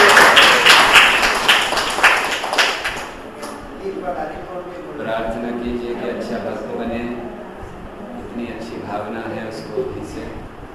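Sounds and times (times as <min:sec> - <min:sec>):
clapping at a Hare Krishna devotional gathering: 0:00.0 - 0:03.6.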